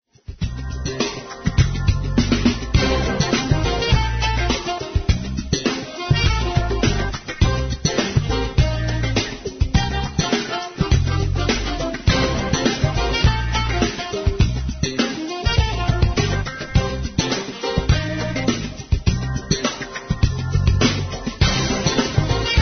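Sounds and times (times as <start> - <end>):
jazz pop music: 0.4 - 22.6.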